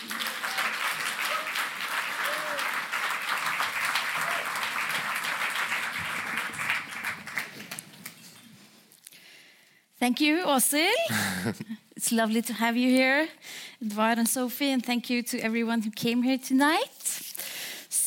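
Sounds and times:
audience applause at an evening talk on politics and art: 0:00.0 - 0:08.2
speech: 0:10.0 - 0:16.9.

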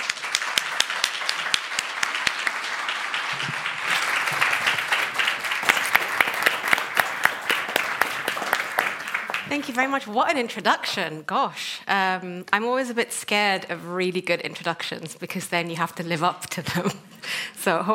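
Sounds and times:
lecture audience applause welcoming the speaker: 0:00.0 - 0:09.9
speech: 0:09.5 - 0:17.9.

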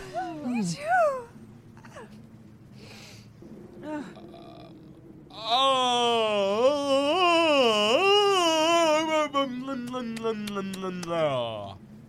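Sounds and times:
exaggerated yawning: 0:03.7 - 0:11.8.

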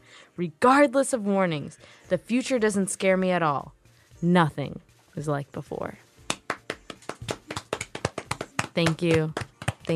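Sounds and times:
speech: 0:00.4 - 0:06.0, 0:08.8 - 0:09.9
audience clapping: 0:06.3 - 0:09.9.

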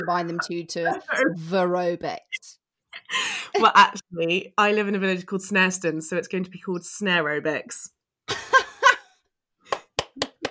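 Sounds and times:
speech: 0:00.0 - 0:08.4
hand clap: 0:09.7 - 0:10.5.

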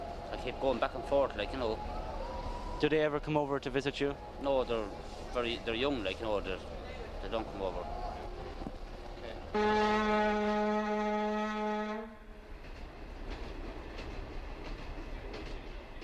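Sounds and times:
speech: 0:00.4 - 0:02.0, 0:02.8 - 0:08.0, 0:09.5 - 0:11.4
train horn at London's Euston Station: 0:09.5 - 0:12.4.

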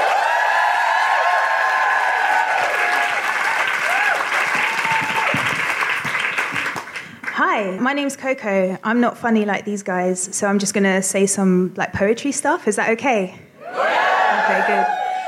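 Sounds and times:
audience applause at a live show: 0:00.0 - 0:07.3, 0:13.8 - 0:15.2
speech: 0:07.6 - 0:13.9.

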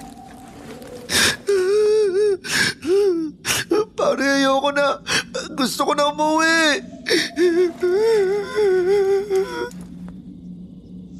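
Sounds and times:
boy crying in fear: 0:01.2 - 0:03.4, 0:07.1 - 0:09.7
speech: 0:04.7 - 0:09.7.

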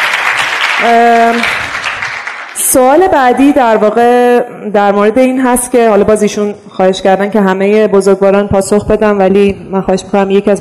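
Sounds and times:
crowd applauding: 0:00.0 - 0:02.8
speech: 0:00.8 - 0:01.6, 0:02.7 - 0:10.6.

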